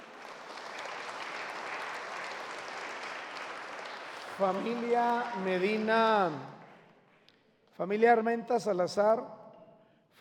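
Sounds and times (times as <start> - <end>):
audience applause: 0.0 - 6.4
speech: 4.4 - 6.6, 7.8 - 9.4.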